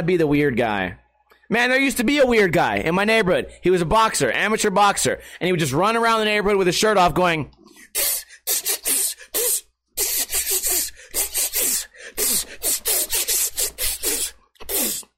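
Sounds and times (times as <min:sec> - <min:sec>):
speech: 0:00.0 - 0:08.6
person imitating snake hiss: 0:07.8 - 0:15.1.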